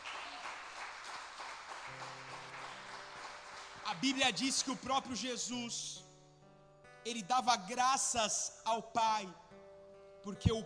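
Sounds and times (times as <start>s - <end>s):
audience applause: 0.0s - 4.2s
speech: 3.9s - 6.0s, 7.0s - 9.5s, 10.2s - 10.6s.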